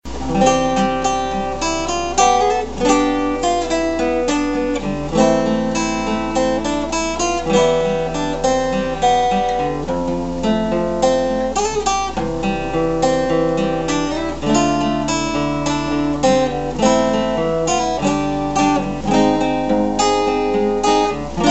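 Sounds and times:
acoustic music: 0.0 - 21.4.

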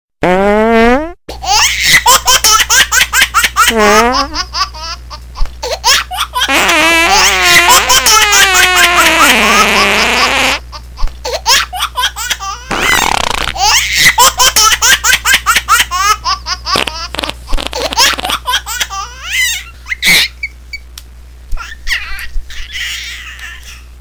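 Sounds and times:
farts: 0.2 - 1.2, 3.7 - 4.4, 6.5 - 10.6, 12.7 - 13.6, 16.8 - 18.4
baby laughing: 1.3 - 10.0, 10.7 - 20.6, 21.6 - 23.9.

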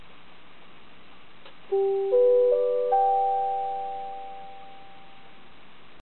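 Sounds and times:
chime: 1.8 - 5.3.

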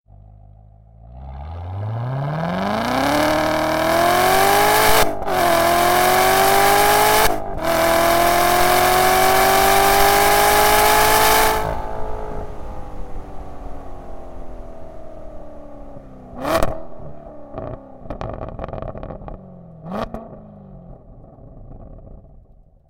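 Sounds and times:
Corvette engine: 0.1 - 22.7.

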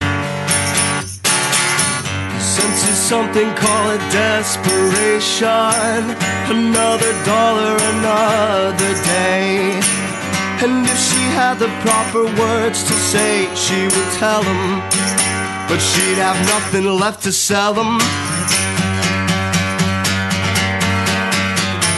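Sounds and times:
acoustic music: 0.0 - 21.9.

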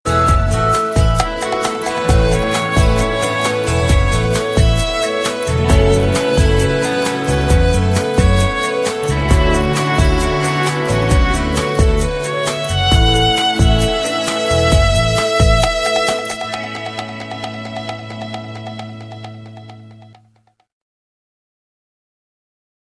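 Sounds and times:
soft music: 0.1 - 20.4.

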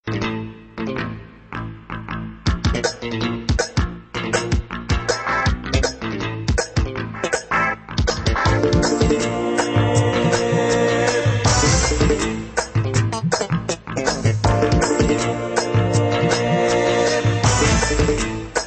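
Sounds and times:
Indian hip hop beat: 2.5 - 18.6.

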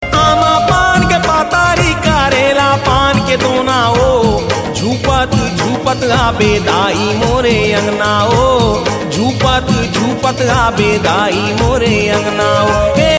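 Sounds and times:
Chhattisgarhi devotional music: 0.0 - 13.1.

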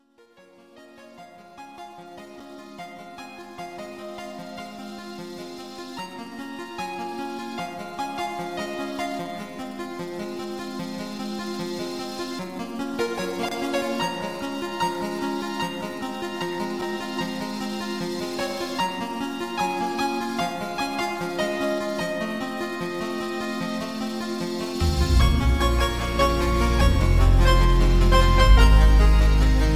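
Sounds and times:
8-bit music: 7.2 - 29.7.

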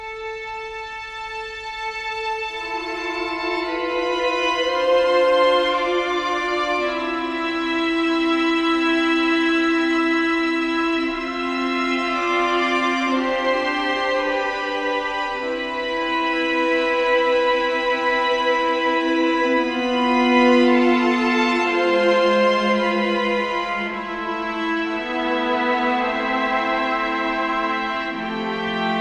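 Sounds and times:
sad song: 0.0 - 29.0.

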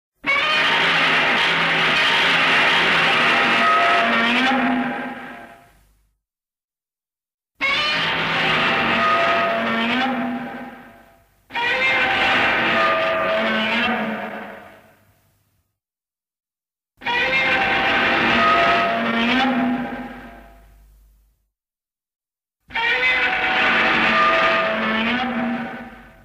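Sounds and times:
roar: 0.3 - 5.5, 7.6 - 14.8, 17.0 - 20.4, 22.7 - 26.2.

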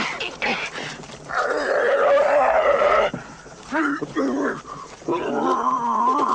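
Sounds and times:
growling: 1.3 - 3.2, 3.8 - 6.3.

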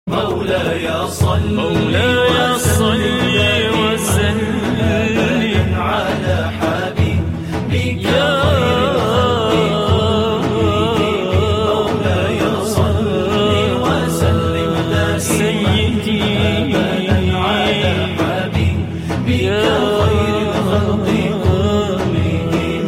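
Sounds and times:
Islamic music: 0.1 - 22.8.

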